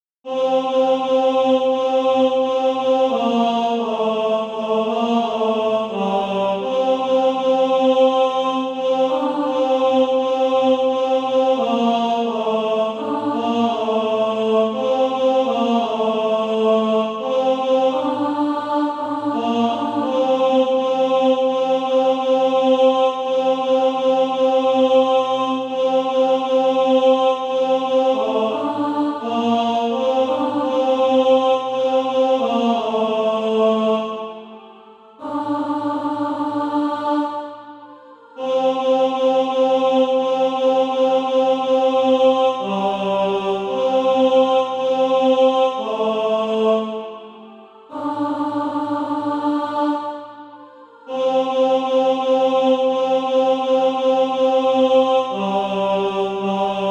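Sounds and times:
tenor singing: 0.3 - 56.8.

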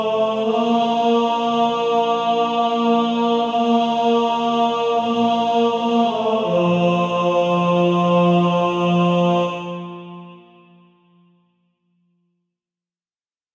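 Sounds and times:
first tenor of a male choir singing: 0.0 - 10.4.

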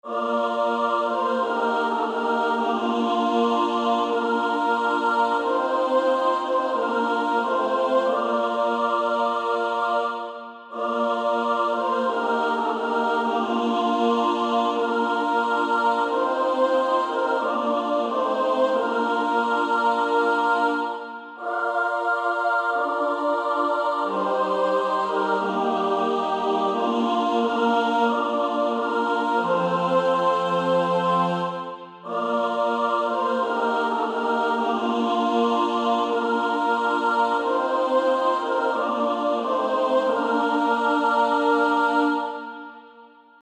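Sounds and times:
female choir singing: 0.0 - 43.4.

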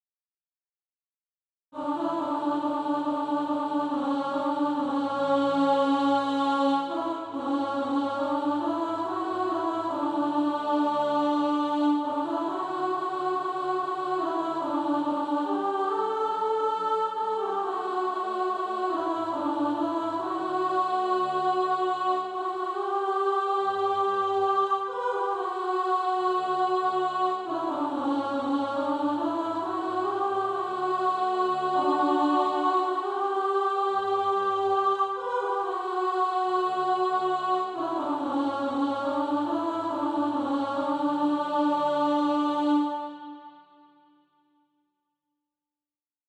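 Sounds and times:
alto voice singing practice music: 1.8 - 44.0.

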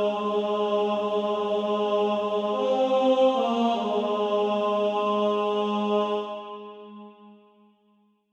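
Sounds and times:
female choir, second alto section singing: 0.0 - 7.4.

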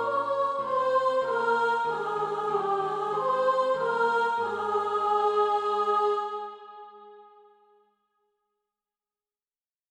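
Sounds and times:
soprano singing: 0.0 - 7.4.

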